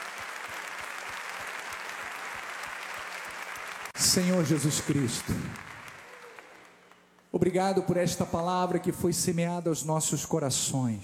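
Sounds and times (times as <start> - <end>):
audience applause: 0.0 - 7.0
speech: 4.0 - 5.7, 7.4 - 11.0.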